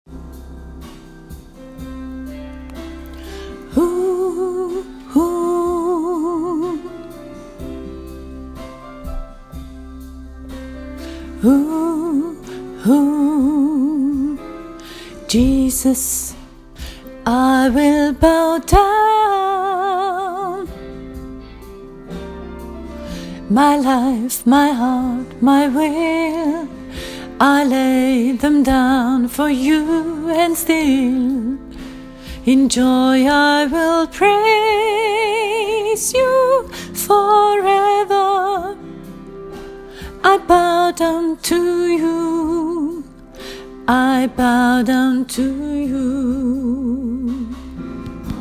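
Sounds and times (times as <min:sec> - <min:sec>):
soprano voice: 0:03.6 - 0:07.2, 0:11.1 - 0:20.9, 0:23.4 - 0:31.8, 0:32.4 - 0:38.8, 0:40.1 - 0:43.2, 0:43.8 - 0:48.3.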